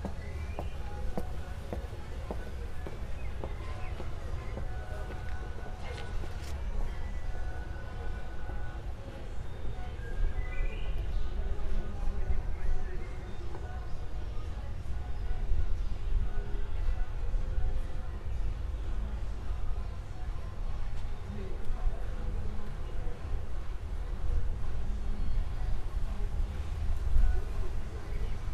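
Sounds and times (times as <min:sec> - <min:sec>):
residential play street ambience in a traffic-calmed zone: 0:00.0 - 0:28.5.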